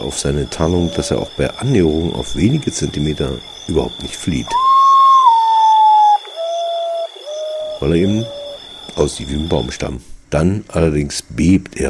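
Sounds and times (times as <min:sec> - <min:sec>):
speech: 0:00.0 - 0:04.7, 0:07.8 - 0:08.4, 0:09.0 - 0:11.8
common potoo whistling: 0:00.8 - 0:01.3, 0:04.5 - 0:08.6.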